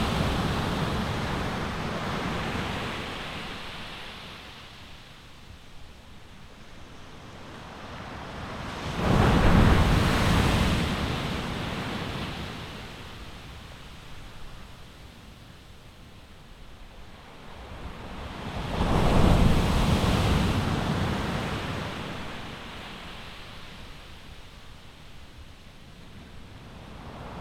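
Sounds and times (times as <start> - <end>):
waves in Brittany: 0.0 - 13.7, 17.2 - 24.5.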